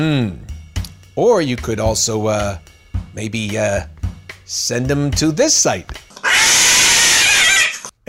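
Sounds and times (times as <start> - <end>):
speech: 0.0 - 0.4, 1.2 - 3.9, 4.5 - 6.0
cat yowling: 6.2 - 7.9.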